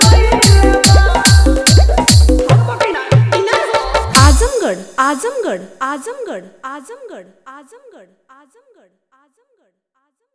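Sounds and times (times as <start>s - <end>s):
new Bhojpuri DJ dance song: 0.0s - 6.1s.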